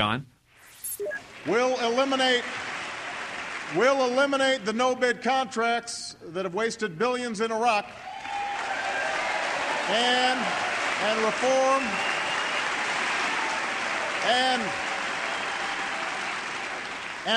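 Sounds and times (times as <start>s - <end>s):
speech: 0.0s - 0.3s, 1.0s - 2.6s, 3.7s - 8.1s, 9.9s - 12.1s, 14.2s - 14.8s
hesitant audience applause during a political speech: 1.3s - 4.5s, 7.9s - 17.3s.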